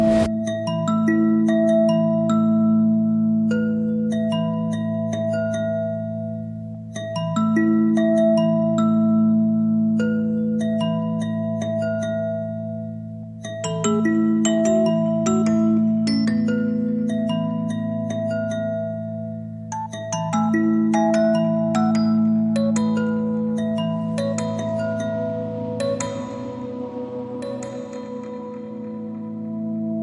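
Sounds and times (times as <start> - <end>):
kalimba: 0.2 - 29.9.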